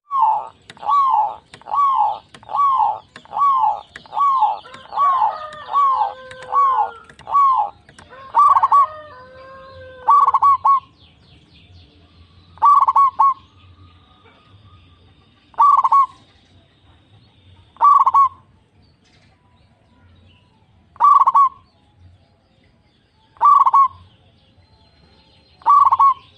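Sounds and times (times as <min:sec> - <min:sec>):
zebra dove cooing: 0:00.0 - 0:10.9, 0:12.6 - 0:13.4, 0:15.5 - 0:16.2, 0:17.8 - 0:18.4, 0:21.0 - 0:21.6, 0:23.4 - 0:24.0, 0:25.6 - 0:26.3.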